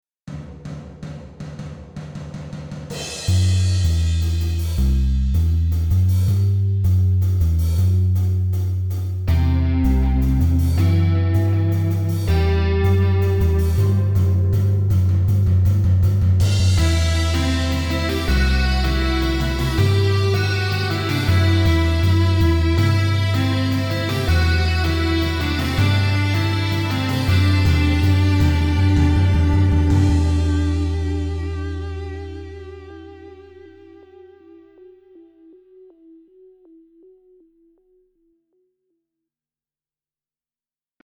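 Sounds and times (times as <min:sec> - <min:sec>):
stripped down drums of a title theme: 0:00.2 - 0:32.9.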